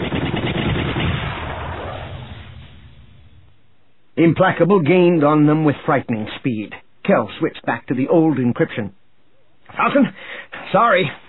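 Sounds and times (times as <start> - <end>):
starfighter cannon fire in a dogfight: 0.0 - 3.6
speech: 4.2 - 9.0, 9.7 - 11.2.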